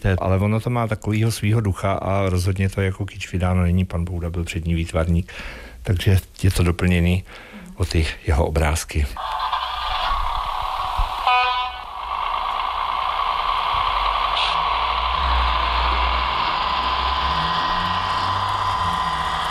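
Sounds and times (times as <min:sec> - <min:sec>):
speech: 0:00.0 - 0:09.6
train departing: 0:09.2 - 0:19.4.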